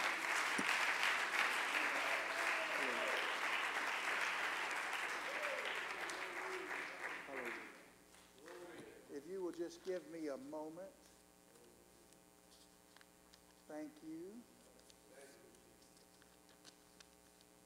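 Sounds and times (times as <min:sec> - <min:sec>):
audience clapping hands: 0:00.0 - 0:08.9
speech: 0:09.7 - 0:11.0, 0:13.8 - 0:14.5.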